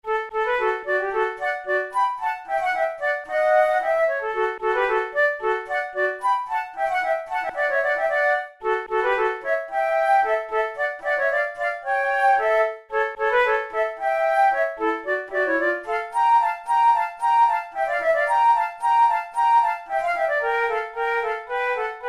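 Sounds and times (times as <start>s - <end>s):
flute duet: 0.0s - 22.0s.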